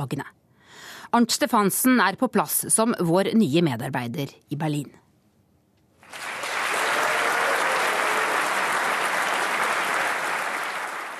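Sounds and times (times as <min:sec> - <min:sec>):
speech: 0:00.0 - 0:05.0
crowd applause at party founding meeting: 0:06.0 - 0:11.1.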